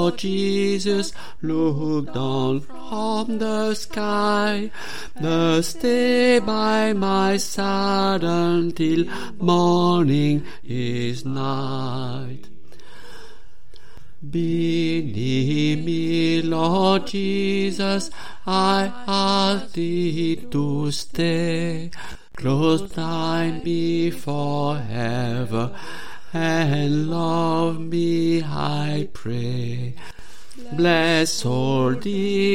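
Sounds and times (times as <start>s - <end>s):
alto voice singing a Christmas carol in a chorale: 0.0s - 12.5s, 14.2s - 32.5s.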